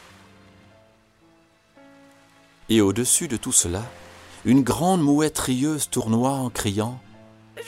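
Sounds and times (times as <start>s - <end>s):
sea water lapping on a winter morning: 2.1s - 5.5s
speech: 2.7s - 7.1s.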